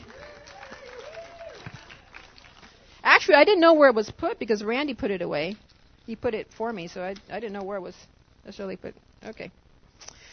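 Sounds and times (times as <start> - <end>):
crowd clapping: 0.0 - 2.9
speech: 3.2 - 9.6.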